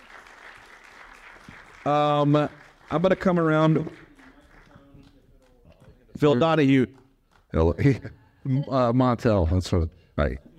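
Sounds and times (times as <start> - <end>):
audience clapping for panelists at a live event: 0.0 - 8.1
speech: 1.8 - 4.0, 6.2 - 10.5.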